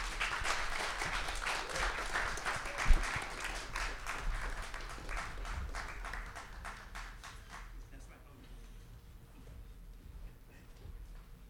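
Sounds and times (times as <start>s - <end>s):
crowd applause: 0.0s - 7.8s.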